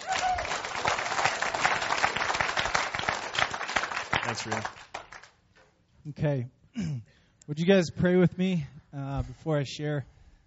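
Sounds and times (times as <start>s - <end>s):
audience clapping: 0.0s - 5.4s
speech: 4.3s - 4.8s, 6.0s - 10.2s.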